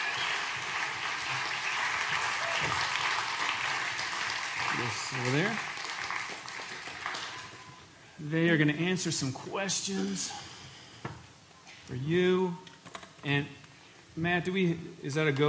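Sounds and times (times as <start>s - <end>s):
audience applause: 0.0s - 7.7s
speech: 4.8s - 5.7s, 8.2s - 10.5s, 11.9s - 13.6s, 14.2s - 15.4s.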